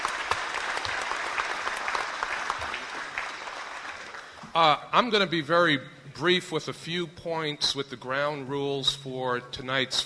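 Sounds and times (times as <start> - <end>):
audience applause at community forum: 0.0 - 4.6
speech: 4.6 - 10.0.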